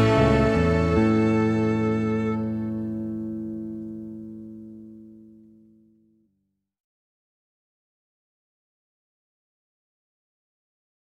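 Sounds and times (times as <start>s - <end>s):
folk song melody: 0.0s - 5.9s.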